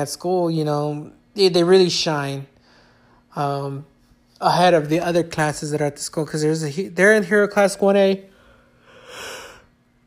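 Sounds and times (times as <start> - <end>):
speech: 0.0 - 2.5, 3.4 - 8.3
person yawning: 8.8 - 9.7.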